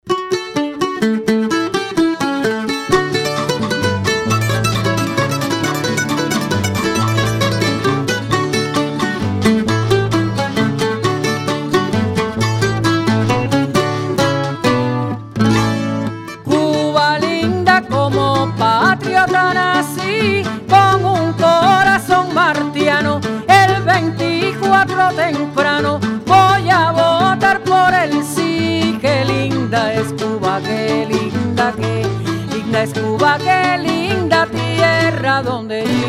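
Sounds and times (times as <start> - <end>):
campesino jingle: 0.1 - 36.0.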